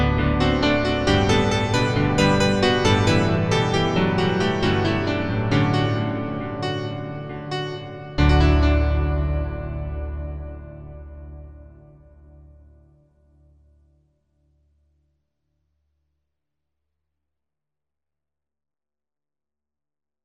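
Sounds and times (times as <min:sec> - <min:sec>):
piano: 0:00.0 - 0:13.9.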